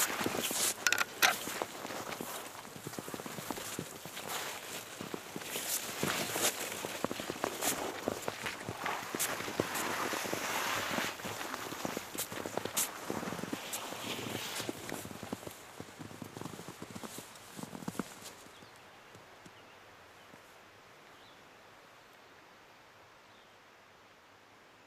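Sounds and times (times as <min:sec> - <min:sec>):
footsteps crunching through snow in Tuolumne Grove, Yosemite National Park: 0:00.0 - 0:18.6.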